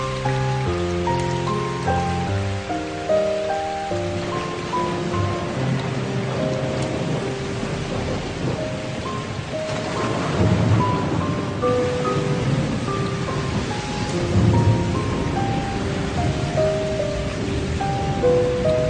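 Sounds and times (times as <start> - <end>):
piano: 0.0 - 18.8
rain: 0.0 - 18.8.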